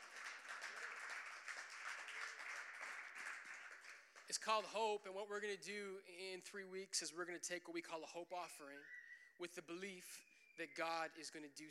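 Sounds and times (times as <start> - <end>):
audience clapping: 0.0 - 4.8
speech: 4.3 - 11.7.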